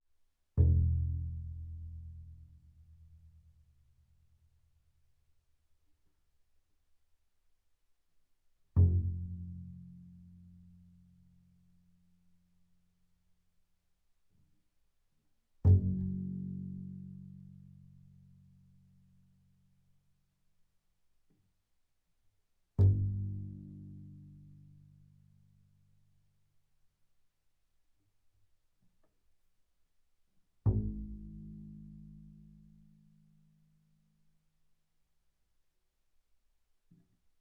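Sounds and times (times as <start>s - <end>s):
loud double bass pizzicato on the E string: 0.6s - 3.3s, 8.8s - 11.6s, 15.6s - 19.0s, 22.8s - 25.4s, 30.7s - 33.5s.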